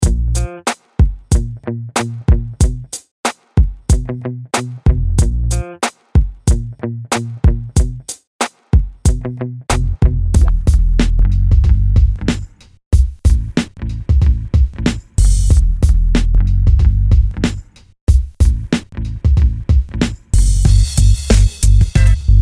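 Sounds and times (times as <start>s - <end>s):
funk beat: 0.0s - 22.3s.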